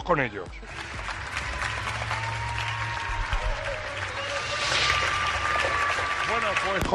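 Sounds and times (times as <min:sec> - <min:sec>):
speech: 0:00.1 - 0:00.9, 0:06.3 - 0:06.9
neighbours clapping for health workers: 0:00.6 - 0:06.9
neighbours whistling and shouting: 0:01.6 - 0:06.9.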